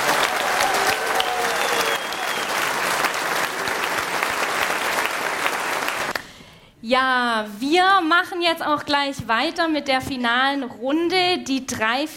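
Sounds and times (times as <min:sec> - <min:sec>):
audience applause: 0:00.0 - 0:06.2
speech: 0:06.9 - 0:12.1.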